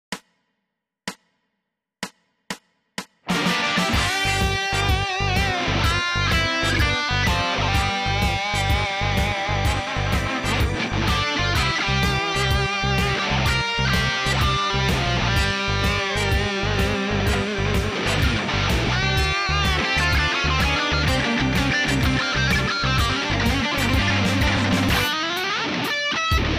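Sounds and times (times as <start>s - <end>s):
blues music in G: 3.2s - 26.5s.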